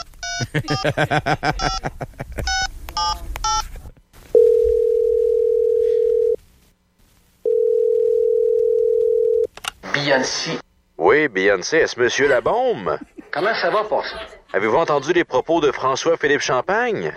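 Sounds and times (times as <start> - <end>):
laughter: 0.4 - 2.6, 12.2 - 15.7
speech: 0.4 - 2.6, 10.1 - 17.1
telephone dial tone: 4.4 - 6.4, 7.5 - 9.5.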